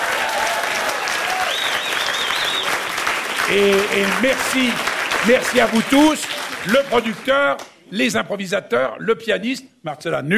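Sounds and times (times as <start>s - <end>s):
audience applause: 0.0s - 7.6s
speech: 3.5s - 10.3s.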